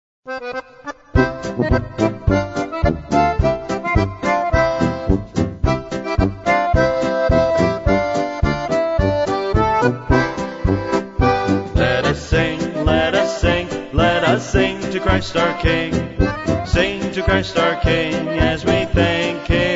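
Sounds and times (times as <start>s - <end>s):
polka music: 0.3s - 19.7s.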